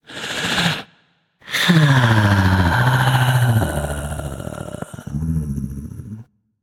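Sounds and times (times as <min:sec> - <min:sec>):
breath: 0:00.0 - 0:05.2.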